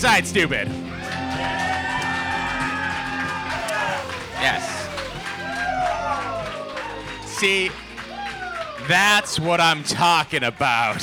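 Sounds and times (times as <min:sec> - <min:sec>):
speech: 0:00.0 - 0:01.0, 0:04.4 - 0:04.8, 0:07.4 - 0:07.8, 0:08.8 - 0:11.0
crowd cheering and applauding: 0:00.0 - 0:11.0
laughter: 0:00.0 - 0:11.0
whoops: 0:00.9 - 0:11.0.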